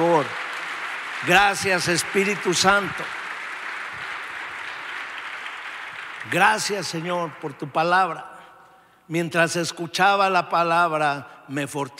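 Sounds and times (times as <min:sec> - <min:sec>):
audience applause: 0:00.0 - 0:07.4
speech: 0:01.2 - 0:03.2, 0:06.3 - 0:08.3, 0:09.1 - 0:11.9.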